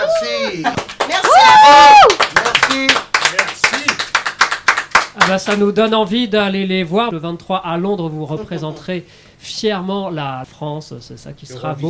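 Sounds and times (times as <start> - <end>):
speech: 0.1 - 1.0, 5.4 - 11.8
audience clapping for musical performers: 0.6 - 6.0.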